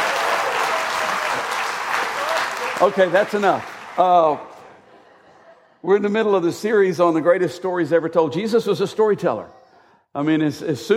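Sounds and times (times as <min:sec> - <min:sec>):
audience applauding: 0:00.0 - 0:04.8
speech: 0:02.8 - 0:04.5, 0:05.8 - 0:10.9.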